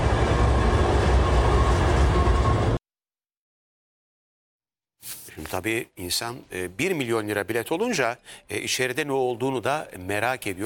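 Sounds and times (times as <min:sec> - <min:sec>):
passenger train pulling out of Edirne station toward Istanbul: 0:00.0 - 0:02.8
speech: 0:05.4 - 0:10.6.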